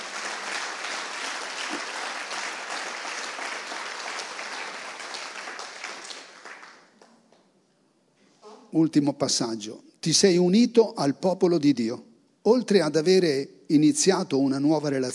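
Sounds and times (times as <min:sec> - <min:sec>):
audience applause: 0:00.0 - 0:06.9
speech: 0:08.7 - 0:15.1.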